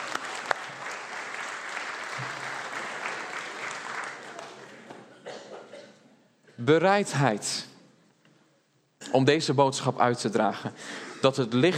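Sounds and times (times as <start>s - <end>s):
audience applauding children: 0.0s - 5.1s
speech: 6.6s - 7.7s, 9.2s - 11.7s.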